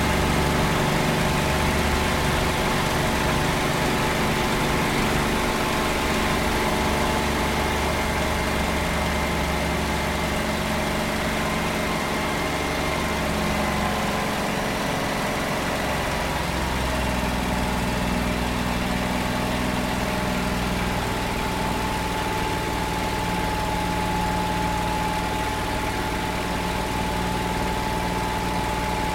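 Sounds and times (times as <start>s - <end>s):
P-40 Kittyhawk aircraft takeoff heard from interior: 0.0s - 29.1s.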